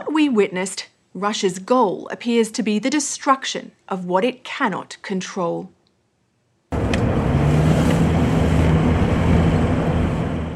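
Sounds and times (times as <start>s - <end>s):
speech: 0.2s - 5.8s
car driving fast alongside a river: 6.7s - 10.5s.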